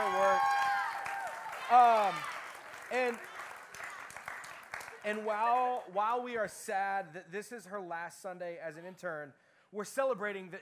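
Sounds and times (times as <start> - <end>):
audience round of applause: 0.0 - 5.8
speech: 1.7 - 3.3, 5.0 - 10.6.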